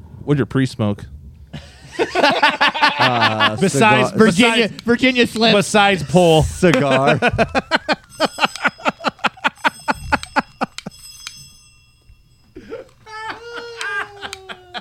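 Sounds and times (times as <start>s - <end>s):
speech: 0.2s - 8.4s
laughter: 1.6s - 11.0s, 12.6s - 14.7s
bells ringing: 1.9s - 14.7s.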